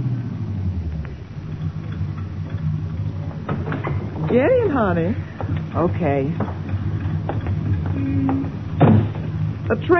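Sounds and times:
taxi car engine idling: 0:00.0 - 0:09.9
faint ticking: 0:00.8 - 0:08.8
speech: 0:04.3 - 0:06.6, 0:09.7 - 0:09.9.

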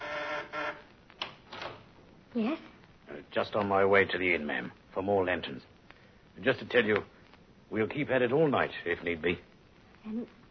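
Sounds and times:
doorbell buzzing: 0:00.0 - 0:00.9
speech: 0:02.3 - 0:05.7, 0:06.4 - 0:10.4.

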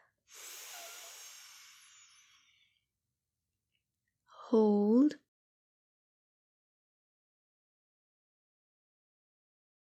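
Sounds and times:
slow breath in for the 4-7-8 breathing technique: 0:00.3 - 0:02.8
speech: 0:04.5 - 0:05.2.

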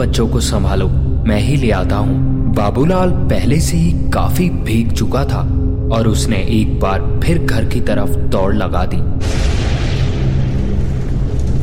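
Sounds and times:
speech: 0:00.0 - 0:09.6
loud thunder clap: 0:09.2 - 0:11.6.

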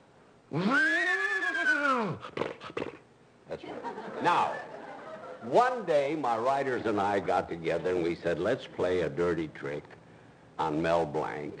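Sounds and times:
speech: 0:00.5 - 0:00.9, 0:04.2 - 0:04.6, 0:05.4 - 0:10.0, 0:10.6 - 0:11.5
human voice imitating a horse's whinny: 0:00.5 - 0:03.0
laughter: 0:03.6 - 0:05.6.

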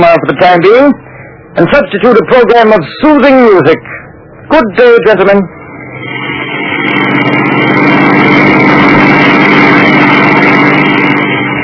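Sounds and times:
speech: 0:00.0 - 0:01.0, 0:01.6 - 0:05.6
car engine driving: 0:05.4 - 0:11.6.

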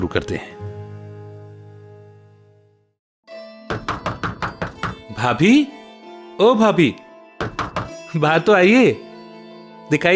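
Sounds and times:
speech: 0:00.0 - 0:00.7, 0:05.2 - 0:05.8, 0:06.4 - 0:09.1, 0:09.9 - 0:10.1
knocking on a door: 0:03.7 - 0:05.1, 0:07.4 - 0:08.0.

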